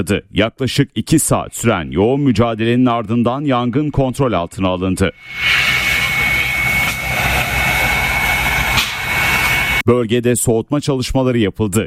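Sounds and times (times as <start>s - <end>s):
speech: 0.0s - 5.8s, 9.8s - 11.8s
firefighting helicopter engine roar: 5.1s - 9.8s.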